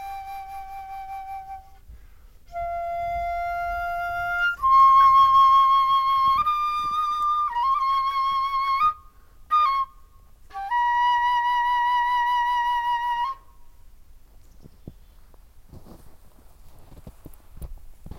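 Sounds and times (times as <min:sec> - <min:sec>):
flute improvisation: 0:00.0 - 0:13.8.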